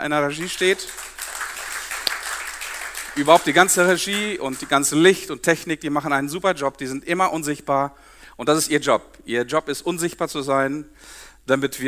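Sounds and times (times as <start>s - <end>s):
speech: 0.0s - 1.1s, 3.2s - 11.8s
audience applauding: 0.3s - 5.0s.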